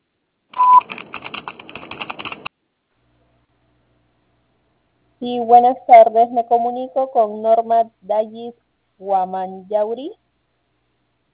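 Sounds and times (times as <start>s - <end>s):
voicemail recording tone beep: 0.6s - 0.8s
speech: 5.2s - 10.2s.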